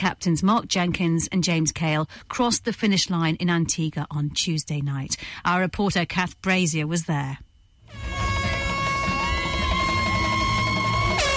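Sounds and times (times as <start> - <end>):
speech: 0.0 - 7.5
boat horns and hooters blaring at harbour: 7.9 - 11.3.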